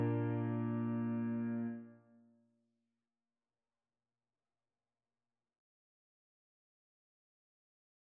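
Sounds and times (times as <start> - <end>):
tuba playing hymn: 0.0 - 1.8.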